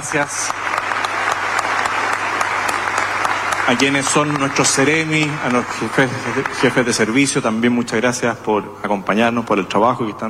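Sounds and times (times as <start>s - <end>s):
speech: 0.0s - 0.7s, 3.7s - 10.2s
audience applause at a civic event with the mayor: 0.0s - 7.7s
louder individual claps: 0.5s - 6.8s.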